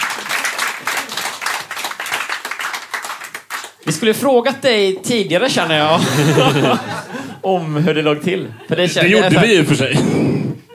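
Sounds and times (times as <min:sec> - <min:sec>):
applause: 0:00.0 - 0:03.8
speech: 0:03.9 - 0:10.2
laughter: 0:05.8 - 0:07.4.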